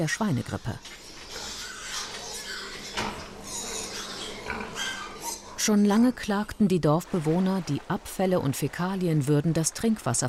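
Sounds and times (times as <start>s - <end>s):
speech: 0.0s - 1.0s, 5.6s - 10.2s
pigs grunting and squealing on a pig farm: 0.8s - 5.8s.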